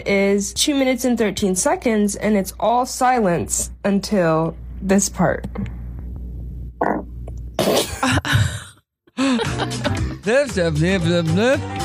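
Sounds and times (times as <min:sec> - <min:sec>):
speech: 0:00.0 - 0:05.8, 0:06.8 - 0:08.6, 0:09.2 - 0:11.8
fart: 0:06.8 - 0:07.9
laughter: 0:09.2 - 0:10.3.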